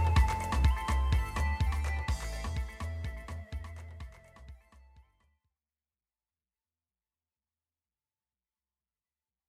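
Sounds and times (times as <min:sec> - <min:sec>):
afrobeats music: 0:00.0 - 0:05.2.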